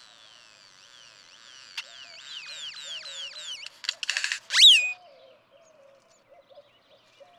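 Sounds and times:
great-tailed grackle song: 1.8s - 4.9s.

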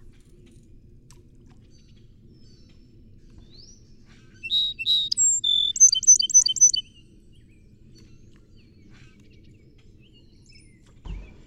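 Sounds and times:
song sparrow song: 4.4s - 6.9s.

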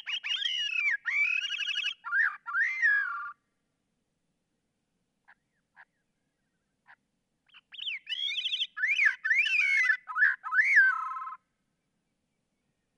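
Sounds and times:
Gray-cheeked Thrush calling: 0.0s - 3.4s, 6.8s - 11.4s.

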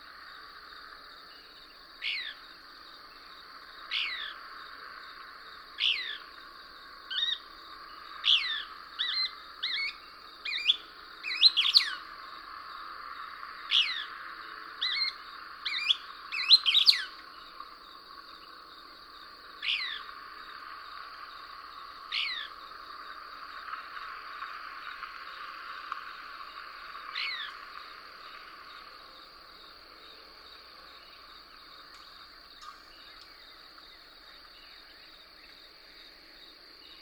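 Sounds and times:
steady high insect drone: 0.0s - 37.0s
Couch's Kingbird singing: 15.7s - 17.1s.

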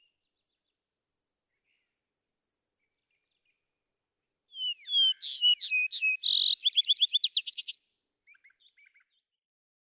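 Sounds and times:
vesper sparrow song: 4.5s - 9.0s.

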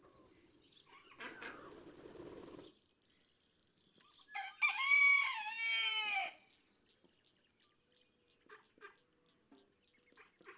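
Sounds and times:
red junglefowl rooster crowing in a barnyard in Kentucky: 4.3s - 6.4s.

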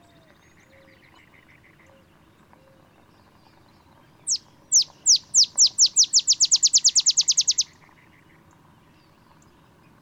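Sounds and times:
olive sparrow bouncing-ball song: 4.3s - 7.9s.

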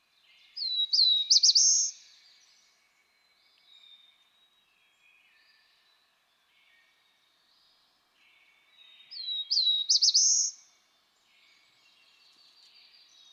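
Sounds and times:
black-throated blue warbler song: 0.0s - 13.3s.

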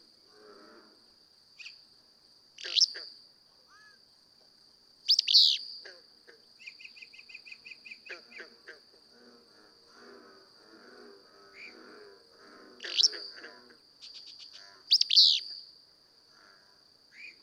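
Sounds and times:
Willow Flycatcher calling: 1.6s - 1.8s, 2.6s - 3.1s, 5.0s - 5.8s, 6.6s - 8.5s, 12.8s - 15.7s.

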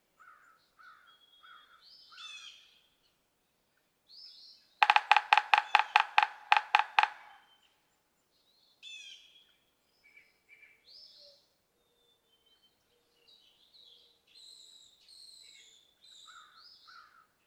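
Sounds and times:
yellow-bellied sapsucker nasal mewing notes: 4.8s - 7.4s.

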